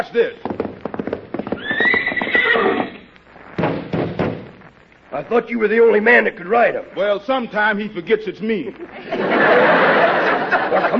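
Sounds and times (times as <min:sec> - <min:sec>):
speech: 0:00.0 - 0:00.6, 0:05.1 - 0:10.9
horse neighing and whinnying: 0:01.5 - 0:03.1
laughter: 0:08.8 - 0:10.9.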